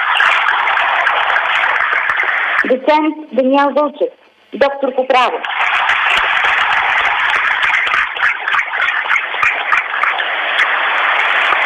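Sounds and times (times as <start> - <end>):
audience applause: 0.0 - 2.7, 5.4 - 11.6
speech: 2.9 - 5.6.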